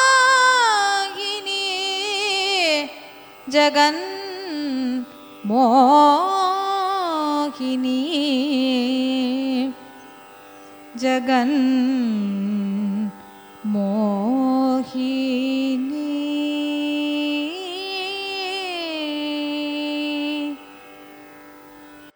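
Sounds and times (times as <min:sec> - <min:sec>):
Carnatic music signature in raga Jaganmohini: 0:00.0 - 0:22.1.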